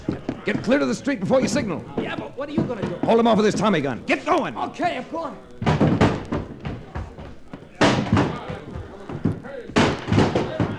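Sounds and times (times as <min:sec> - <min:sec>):
speech: 0:00.4 - 0:05.6
body ramming a door: 0:05.6 - 0:07.2, 0:09.8 - 0:10.7.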